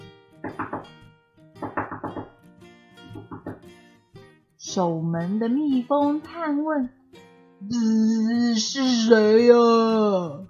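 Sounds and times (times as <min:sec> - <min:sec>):
knocking on a door: 0:00.4 - 0:01.0, 0:01.6 - 0:02.4, 0:03.0 - 0:03.7
speech: 0:04.7 - 0:07.0, 0:07.7 - 0:10.4.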